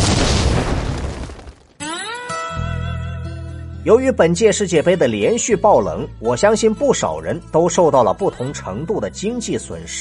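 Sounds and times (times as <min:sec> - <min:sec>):
explosion sound effect: 0:00.0 - 0:01.9
speech: 0:03.8 - 0:09.9.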